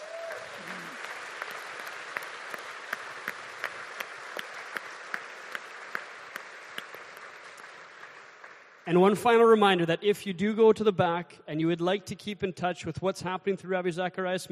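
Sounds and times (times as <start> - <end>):
audience applause: 0.0 - 8.8
speech: 8.9 - 14.5.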